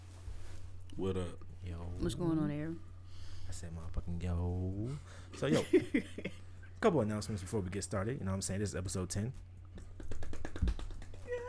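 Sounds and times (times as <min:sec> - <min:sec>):
speech: 0:01.0 - 0:02.9, 0:03.5 - 0:09.6
hand clap: 0:09.7 - 0:11.4.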